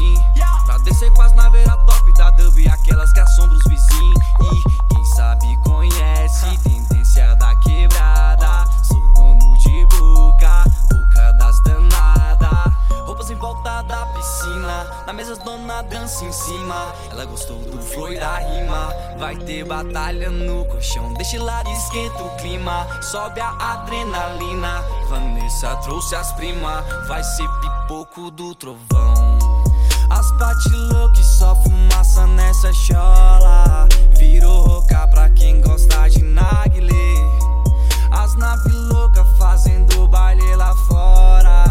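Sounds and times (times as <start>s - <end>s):
deep bass: 0.0s - 14.7s, 17.4s - 22.9s, 28.9s - 41.6s.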